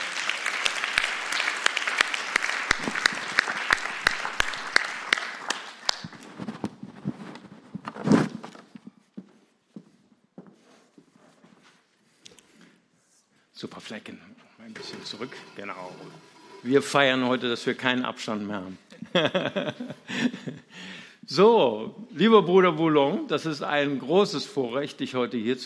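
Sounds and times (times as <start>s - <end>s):
audience applause welcoming guests: 0.0s - 6.2s
speech: 13.6s - 25.6s
laughter: 18.9s - 20.7s.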